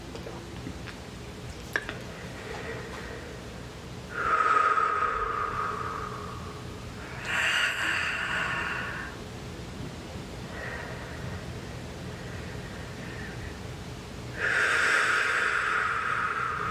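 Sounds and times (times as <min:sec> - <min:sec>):
deep breathing during a guided meditation: 0:02.1 - 0:09.2, 0:10.4 - 0:13.7, 0:14.3 - 0:16.6.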